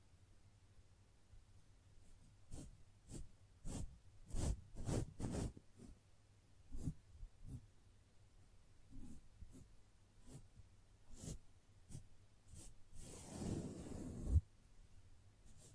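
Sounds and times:
gentle brushing strokes: 0:02.2 - 0:06.0, 0:08.9 - 0:14.4.

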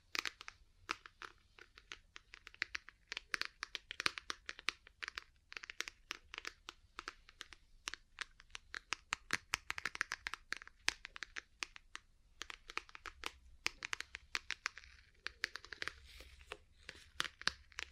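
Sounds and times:
ear cleaning and massage crinkly scratches and taps: 0:00.0 - 0:17.9.

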